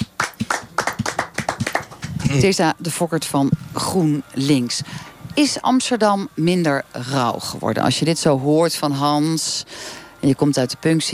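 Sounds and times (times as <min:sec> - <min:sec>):
audience applause: 0:00.0 - 0:02.4
speech: 0:02.3 - 0:11.1.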